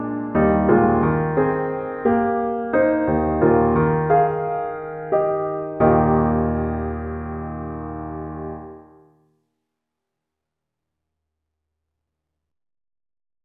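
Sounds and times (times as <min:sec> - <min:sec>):
solo piano: 0:00.0 - 0:09.3.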